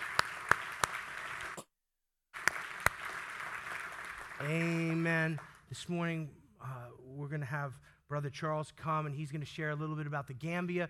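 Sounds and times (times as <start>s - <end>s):
audience applause: 0.0s - 1.6s, 2.4s - 5.6s
speech: 4.4s - 10.8s.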